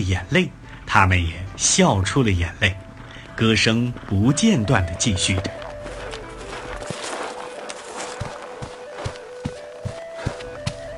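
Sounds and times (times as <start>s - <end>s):
speech: 0.0s - 2.8s, 3.4s - 5.6s
footsteps of a small group walking by: 2.8s - 10.9s.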